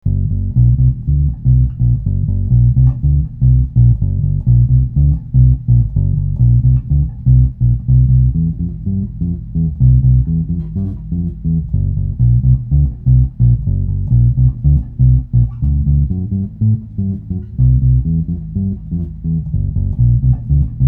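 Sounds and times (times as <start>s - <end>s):
bass: 0.0s - 20.8s.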